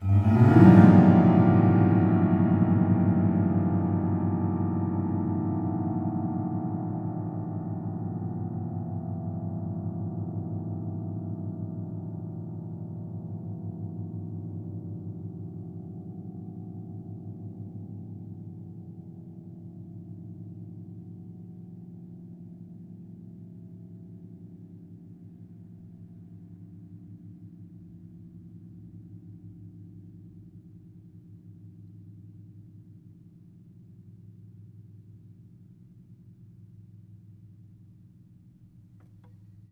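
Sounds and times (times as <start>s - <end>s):
strings: 0.0s - 4.1s
piano: 0.0s - 32.7s.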